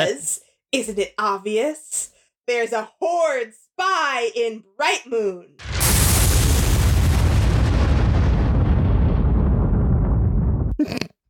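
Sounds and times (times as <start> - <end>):
speech: 0.0 - 5.7
loud crack of thunder and rumble: 5.6 - 10.8
short crackling burst: 5.6 - 10.8.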